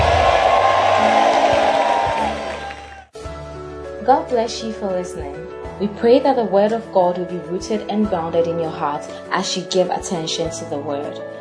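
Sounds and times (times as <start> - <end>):
audience shouting and cheering: 0.0 - 3.2
speech: 4.1 - 11.4.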